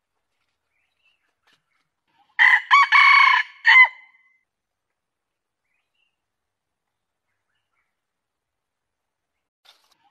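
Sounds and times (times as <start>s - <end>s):
junglefowl crowing: 2.4s - 4.1s.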